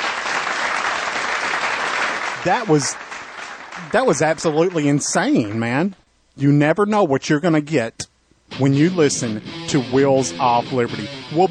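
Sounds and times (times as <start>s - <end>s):
applause: 0.0s - 5.8s
speech: 2.4s - 3.0s, 3.8s - 11.4s.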